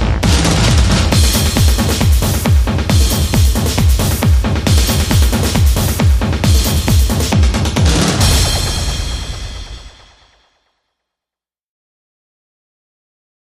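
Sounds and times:
slammin drum mix: 0.0s - 10.6s.

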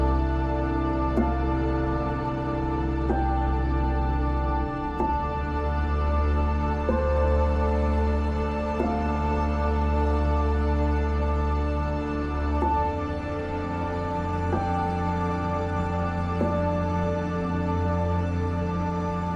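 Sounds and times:
lead piano: 0.0s - 19.3s
strings: 0.0s - 19.3s.

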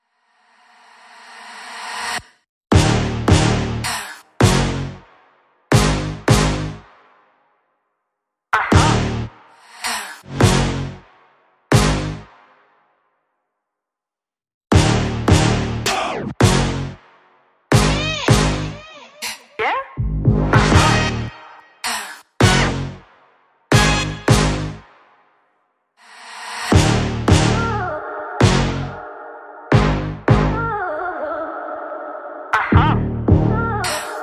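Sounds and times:
music without drums or bass: 2.7s - 7.8s, 8.6s - 9.6s, 10.3s - 13.2s, 14.7s - 18.9s, 20.0s - 21.8s, 22.4s - 25.6s, 26.7s - 29.0s, 29.7s - 31.0s, 32.6s - 34.2s.

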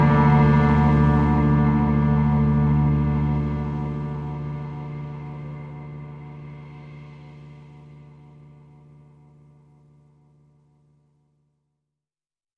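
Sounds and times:
ambient music: 0.0s - 9.8s.

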